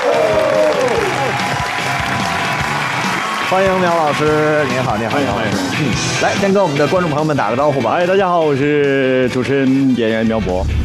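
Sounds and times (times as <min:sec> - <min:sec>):
large audience applauding: 0:00.0 - 0:05.7
speech: 0:03.5 - 0:10.8.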